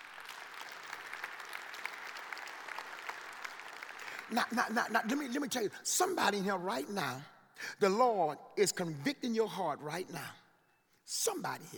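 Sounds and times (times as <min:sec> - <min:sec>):
audience applause: 0:00.0 - 0:05.4
speech: 0:04.3 - 0:10.4, 0:11.1 - 0:11.7.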